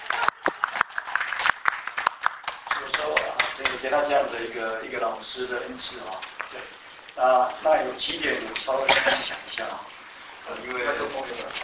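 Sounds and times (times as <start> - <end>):
small audience applause: 0.0 - 3.9
speech: 3.0 - 9.9, 10.5 - 11.6.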